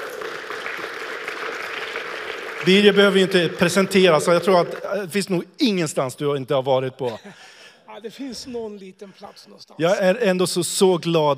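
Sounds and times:
audience applause: 0:00.0 - 0:05.0
speech: 0:02.6 - 0:11.3.

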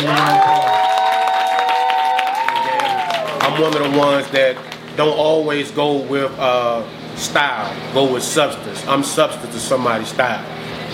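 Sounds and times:
audience applause: 0:00.0 - 0:05.0
speech: 0:03.6 - 0:10.9.

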